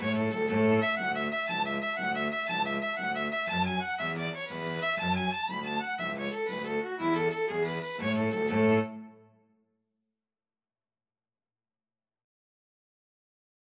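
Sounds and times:
string trio playing an Irish jig medley: 0.0 - 9.2.

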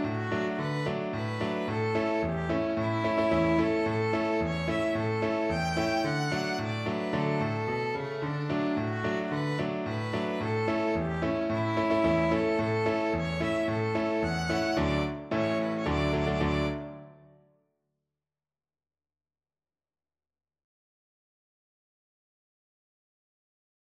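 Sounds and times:
violin playing: 0.0 - 17.1.

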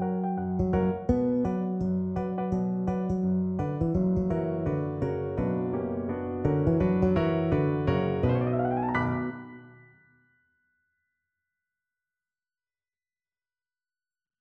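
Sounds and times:
bass guitar: 0.0 - 9.3.

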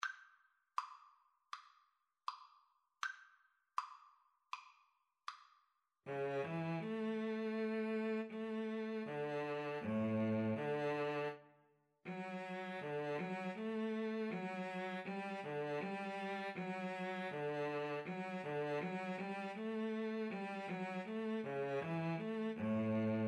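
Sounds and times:
cello: 6.1 - 11.5, 12.1 - 23.2
violin: 6.1 - 23.2.

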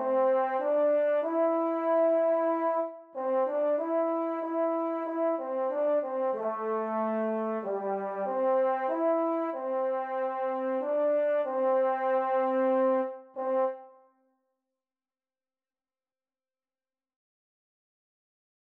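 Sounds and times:
tuba duet: 0.0 - 14.0.

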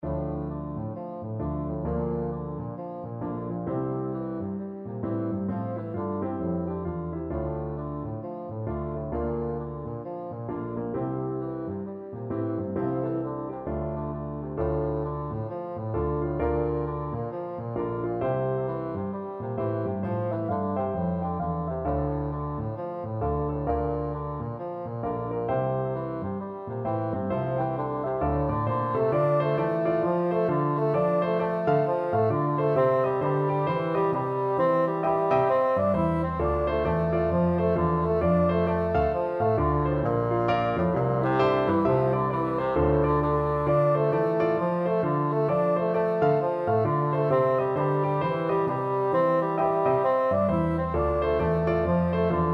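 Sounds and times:
bassoon: 0.0 - 52.5.

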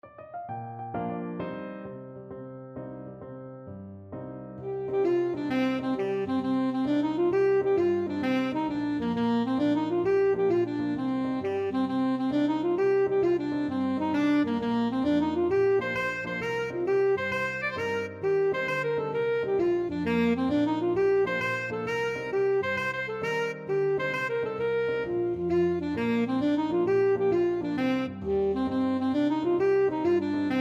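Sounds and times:
alto saxophone: 4.5 - 30.5.

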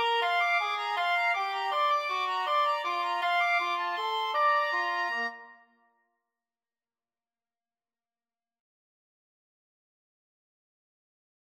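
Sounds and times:
woodwind trio playing: 0.0 - 5.5.

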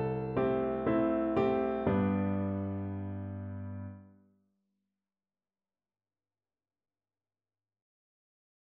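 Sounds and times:
piano duet: 0.0 - 4.1.

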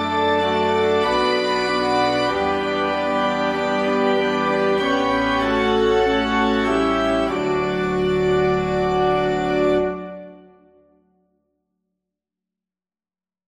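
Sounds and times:
organ playing a march: 0.0 - 10.8.

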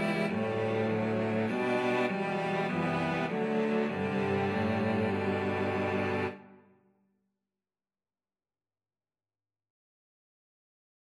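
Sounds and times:
cello quartet: 0.0 - 6.5.

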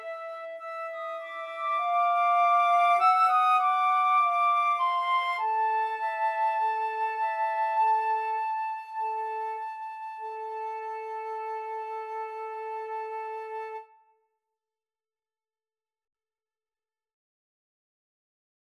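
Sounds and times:
flute duet: 0.0 - 14.2.

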